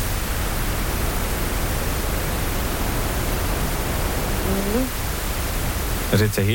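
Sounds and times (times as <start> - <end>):
pink noise: 0.0 - 6.5
faint voice-like sound: 4.4 - 5.0.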